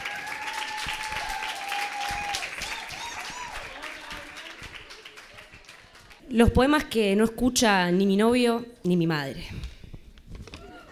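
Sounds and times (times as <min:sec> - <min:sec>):
audience applause: 0:00.0 - 0:06.2
speech: 0:06.3 - 0:09.7.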